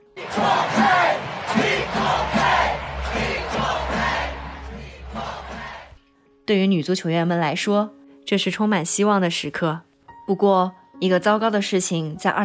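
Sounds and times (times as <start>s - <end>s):
huge stadium crowd chanting in unison: 0.0s - 6.0s
speech: 6.5s - 12.4s.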